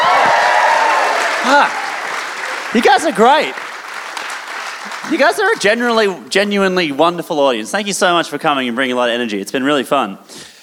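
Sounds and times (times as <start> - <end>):
audience applause: 0.0 - 5.6
speech: 1.5 - 1.8, 2.7 - 3.6, 4.8 - 10.5.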